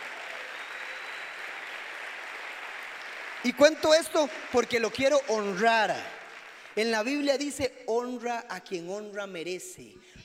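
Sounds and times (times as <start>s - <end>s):
audience applauding: 0.0s - 7.2s
speech: 3.4s - 6.2s, 6.8s - 10.2s.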